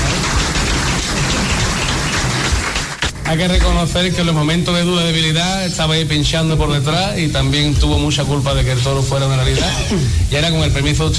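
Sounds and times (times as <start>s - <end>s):
audience applause: 0.0s - 4.2s
speech: 3.3s - 11.1s.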